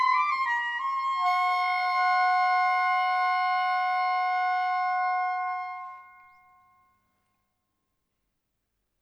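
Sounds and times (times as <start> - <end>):
E flat and bass clarinet: 0.0 - 6.7.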